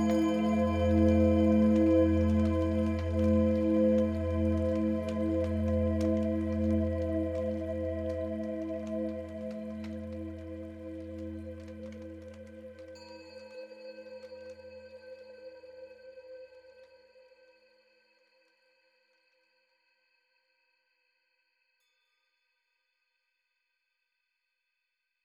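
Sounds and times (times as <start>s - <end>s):
rain: 0.0s - 12.9s.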